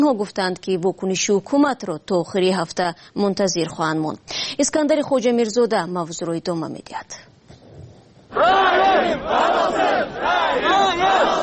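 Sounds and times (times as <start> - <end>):
speech: 0.0 - 7.3, 8.3 - 11.4
protest crowd shouting outside parliament: 8.3 - 11.4.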